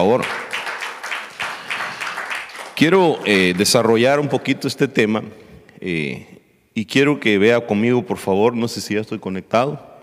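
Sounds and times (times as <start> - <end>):
speech: 0.0 - 0.4, 2.8 - 9.9
audience applause: 0.0 - 3.9.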